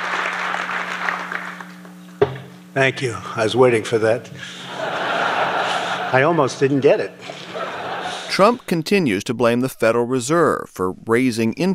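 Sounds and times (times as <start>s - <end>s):
tepid applause from a New York audience at a Trump economic speech: 0.0s - 1.7s
low constant hum: 0.0s - 11.7s
speech: 2.8s - 4.7s, 6.1s - 7.4s, 8.3s - 11.7s
laughter: 4.4s - 9.9s.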